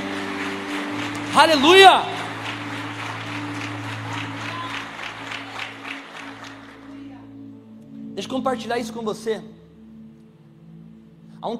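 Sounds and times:
audience applauding: 0.0s - 7.3s
speech: 1.3s - 2.2s, 8.2s - 9.6s.

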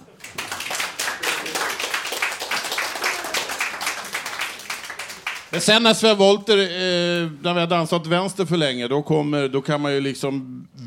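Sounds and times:
audience applause: 0.0s - 5.6s
speech: 5.5s - 10.8s.

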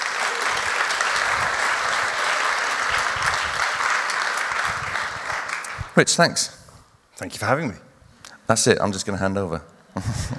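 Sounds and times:
audience applause: 0.0s - 6.0s
speech: 6.0s - 6.6s, 7.2s - 7.9s, 8.5s - 10.3s.

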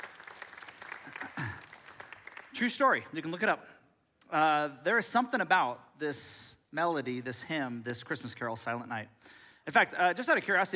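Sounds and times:
audience clapping: 0.0s - 3.3s
speech: 2.6s - 10.7s.

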